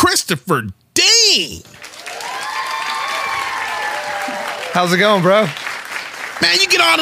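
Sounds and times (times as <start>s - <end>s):
speech: 0.1s - 1.9s, 4.8s - 5.6s, 6.4s - 7.0s
audience applause and cheering welcoming a co-host: 1.7s - 7.0s.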